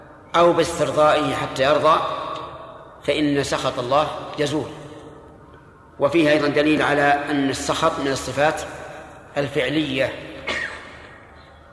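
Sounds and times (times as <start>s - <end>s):
speech: 0.4s - 2.4s, 3.0s - 4.8s, 6.0s - 10.3s
sneeze: 10.4s - 11.6s.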